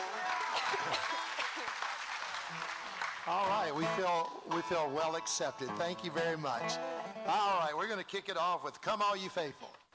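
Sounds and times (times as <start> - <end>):
audience applause: 0.0 - 4.2
speech: 3.2 - 9.7.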